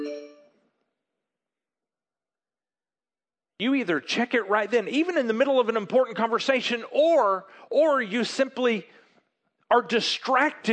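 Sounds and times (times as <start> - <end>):
phone notification chime: 0.0 - 0.5
speech: 3.6 - 9.0, 9.7 - 10.7.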